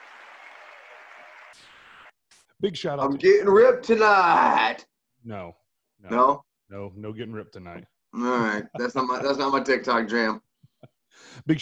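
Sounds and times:
applause: 0.0 - 2.2
speech: 2.6 - 10.5, 11.1 - 11.6.

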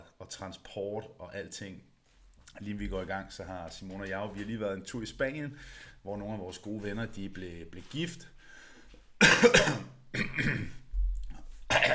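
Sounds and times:
speech: 0.4 - 1.9, 2.6 - 8.4, 9.2 - 10.8
person with a slight cold coughing and clearing throat: 9.2 - 10.8, 11.7 - 11.9.

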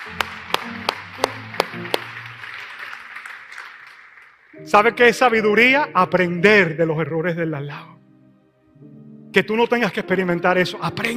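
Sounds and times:
audience applause: 0.0 - 4.6
speech: 4.6 - 8.0, 9.3 - 11.1.

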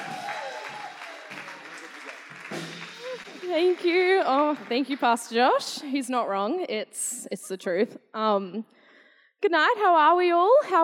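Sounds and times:
church congregation applauding while standing to welcome a speaker: 0.0 - 5.6
speech: 3.6 - 8.8, 9.4 - 10.8.

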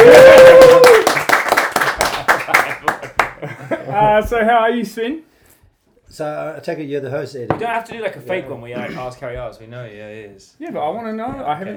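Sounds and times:
small audience round of applause: 0.0 - 3.5
speech: 4.2 - 5.3, 6.1 - 11.7.

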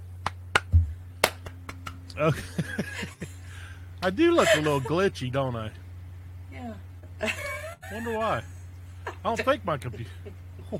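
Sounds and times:
hand claps: 0.2 - 2.2
dull low thump: 0.6 - 1.5
speech: 2.2 - 3.3, 4.0 - 5.8, 6.5 - 8.5, 9.2 - 10.7
laughter: 2.2 - 5.2, 7.1 - 10.7.

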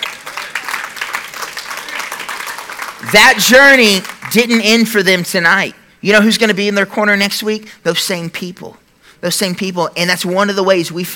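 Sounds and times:
audience clapping: 0.0 - 4.9
speech: 3.0 - 11.1.

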